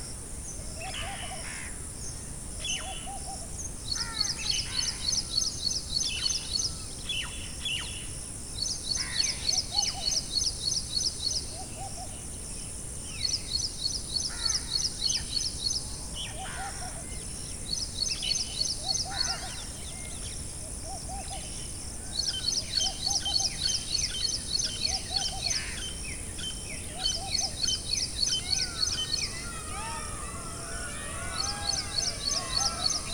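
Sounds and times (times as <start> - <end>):
crickets chirping at night in a forest: 0.0 - 33.1
bugs at night in a forest: 23.5 - 33.1.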